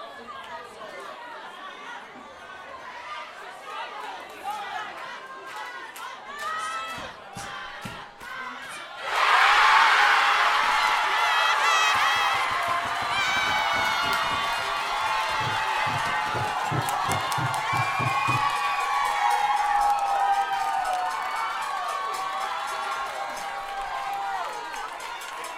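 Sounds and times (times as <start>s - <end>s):
crowd at a club cheering a penalty shootout win: 0.0s - 25.5s.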